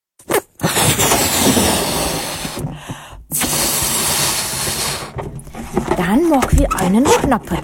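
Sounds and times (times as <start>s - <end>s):
air rushing out of a balloon: 0.6s - 5.6s
speech: 6.0s - 7.6s.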